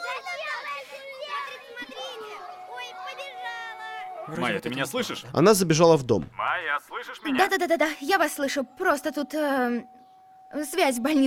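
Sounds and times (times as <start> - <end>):
children teasing and laughing: 0.0 - 4.3
speech: 4.3 - 11.2.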